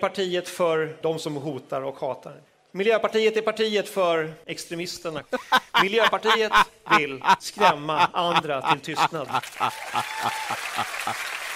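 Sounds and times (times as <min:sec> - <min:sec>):
speech: 0:00.0 - 0:11.4
laughter: 0:05.3 - 0:11.4
wild applause and cheering: 0:09.2 - 0:11.5.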